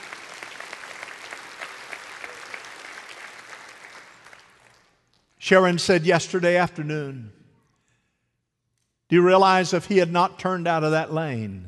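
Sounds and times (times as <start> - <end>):
audience applause: 0.0 - 5.0
speech: 5.4 - 7.4, 9.1 - 11.6.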